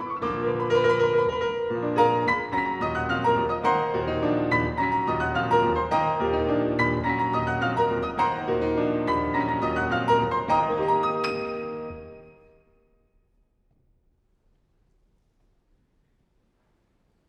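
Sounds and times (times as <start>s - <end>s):
piano prelude: 0.0s - 12.9s.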